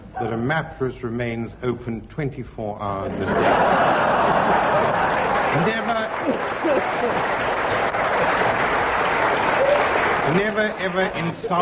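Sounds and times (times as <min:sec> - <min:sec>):
speech: 0:00.2 - 0:07.7, 0:10.3 - 0:11.5
studio audience laughing: 0:03.1 - 0:11.5.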